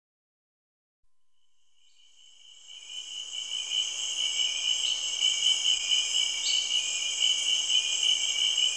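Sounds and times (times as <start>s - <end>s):
shrill insect chorus in a rainforest in Cameroon: 1.7s - 8.7s.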